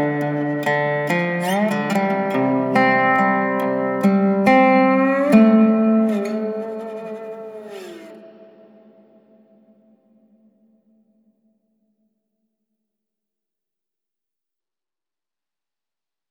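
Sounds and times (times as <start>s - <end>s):
Dobro resonator guitar: 0.0s - 9.9s.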